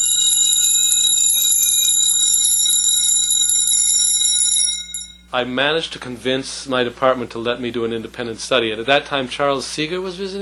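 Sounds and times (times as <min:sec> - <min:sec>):
slightly detuned copper chimes played with tremolo: 0:00.0 - 0:05.3
speech: 0:05.3 - 0:10.4.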